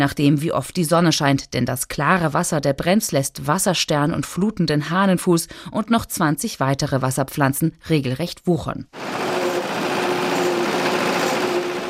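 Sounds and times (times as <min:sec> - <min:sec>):
speech: 0:00.0 - 0:09.7
mowing boat engine on the Brenz river: 0:09.0 - 0:11.8.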